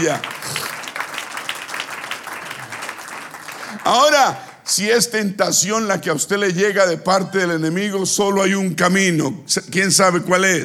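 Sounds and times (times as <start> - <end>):
speech: 0.0 - 0.6, 3.8 - 10.6
audience applause: 0.0 - 4.6.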